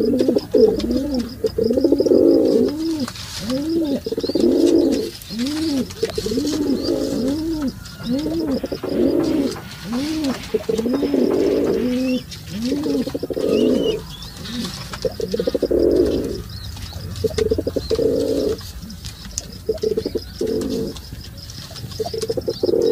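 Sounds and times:
pigeon calling: 0.0 - 22.8.

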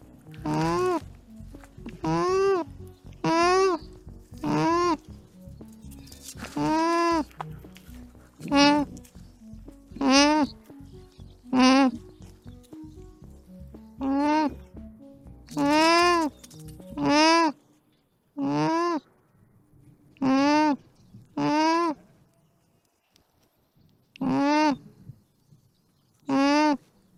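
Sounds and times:
alpaca vocalizing: 0.3 - 10.8, 11.4 - 12.5, 14.0 - 14.6, 15.5 - 17.6, 18.4 - 19.0, 20.1 - 20.8, 21.4 - 22.1, 24.2 - 24.9, 26.3 - 26.9.

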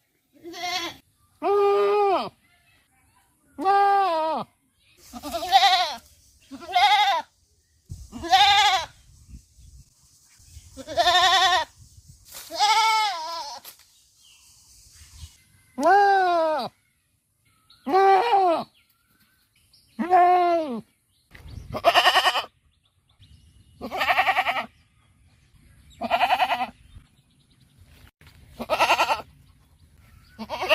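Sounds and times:
happy goat bleating: 0.3 - 2.4, 3.6 - 4.5, 5.1 - 7.3, 8.1 - 8.9, 10.8 - 11.7, 12.5 - 13.6, 17.8 - 18.7, 20.0 - 20.8, 21.8 - 22.5, 23.8 - 24.7, 26.0 - 26.8, 28.6 - 29.3, 30.3 - 30.7.

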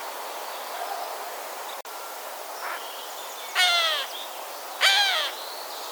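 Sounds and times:
Cooper's Hawk calling: 0.0 - 5.8.

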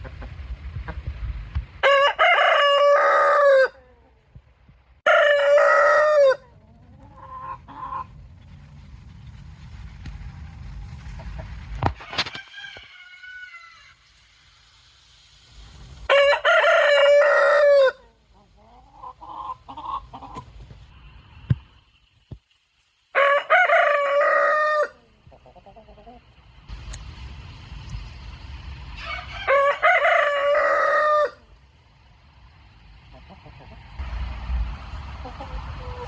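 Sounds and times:
rooster crowing: 1.8 - 4.0, 5.0 - 6.6, 12.0 - 14.0, 16.1 - 18.1, 23.1 - 25.0, 29.0 - 31.5.

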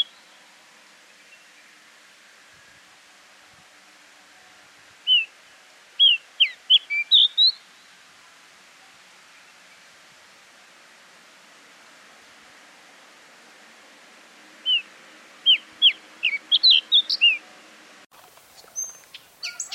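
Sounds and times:
bushchat calling: 0.0 - 0.4, 5.0 - 5.3, 6.0 - 7.7, 14.6 - 17.4, 18.4 - 19.7.

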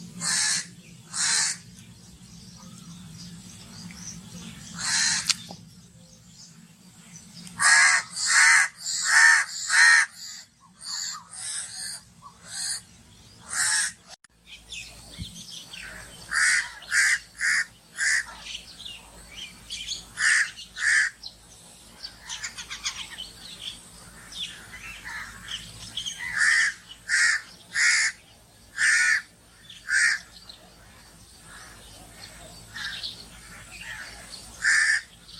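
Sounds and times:
calm bird ambience: 0.0 - 35.3
crow cawing: 0.2 - 1.6, 4.8 - 5.4, 7.6 - 12.8, 13.4 - 14.1, 15.8 - 18.5, 20.2 - 21.2, 26.2 - 30.4, 32.7 - 35.3.

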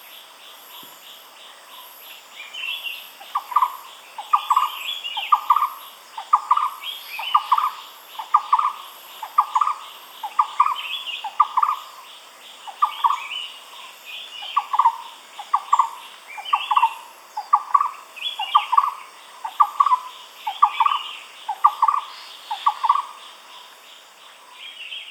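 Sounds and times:
other birds twittering and chattering: 0.0 - 25.1
barbet repeating a low hollow stuttered phrase: 3.2 - 12.0, 12.7 - 13.6, 14.4 - 23.2.

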